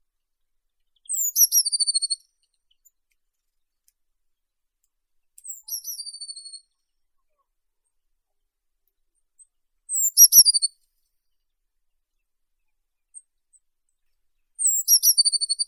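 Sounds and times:
blue tit Cyanistes caeruleus: 1.0s - 2.2s, 5.4s - 6.7s, 9.9s - 10.8s, 14.6s - 15.6s.

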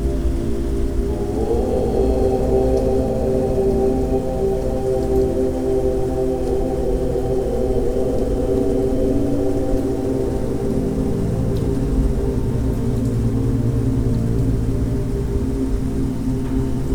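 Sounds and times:
rain: 0.0s - 16.9s
om mantra chanting for meditation: 0.1s - 12.7s.

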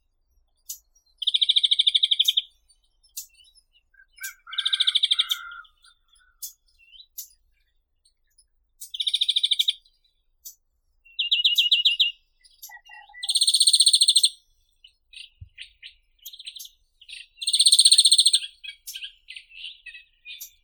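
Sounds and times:
European greenfinch Chloris chloris singing: 0.7s - 7.4s, 11.1s - 14.4s, 15.2s - 20.6s.

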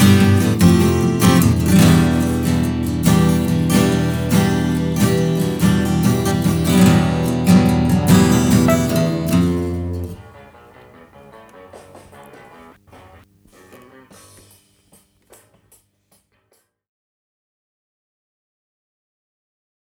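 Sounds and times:
guitar: 0.0s - 14.8s
Rhodes electric piano: 2.2s - 10.2s.

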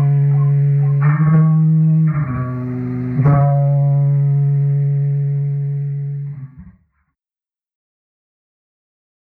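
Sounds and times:
instrumental music: 0.0s - 6.4s.

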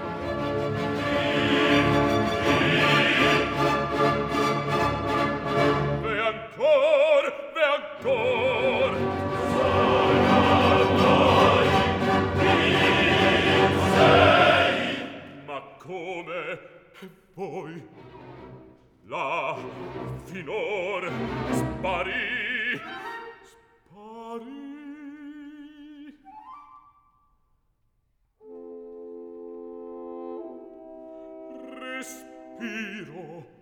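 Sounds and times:
recitative and aria with choir: 0.0s - 16.6s, 17.4s - 23.4s, 30.5s - 33.6s
recitative and aria singer: 6.0s - 9.1s, 15.3s - 18.0s, 19.0s - 26.3s, 31.5s - 33.6s.

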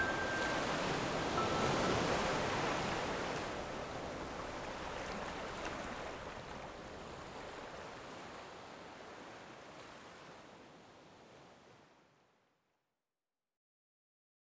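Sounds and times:
sleep music: 0.0s - 3.5s
ocean waves: 0.0s - 10.4s.

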